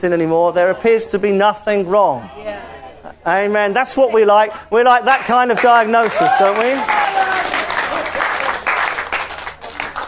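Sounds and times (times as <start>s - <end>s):
speech: 0.0s - 7.4s
audience clapping: 5.1s - 10.0s.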